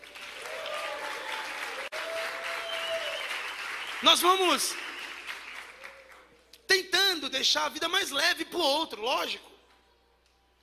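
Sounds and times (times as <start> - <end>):
audience applause: 0.0 - 6.3
speech: 4.0 - 4.8, 7.3 - 9.5.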